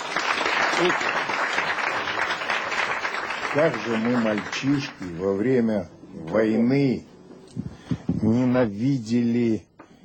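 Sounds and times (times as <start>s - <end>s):
audience applause: 0.0s - 5.1s
speech: 0.8s - 1.2s, 3.6s - 7.1s, 8.2s - 9.7s.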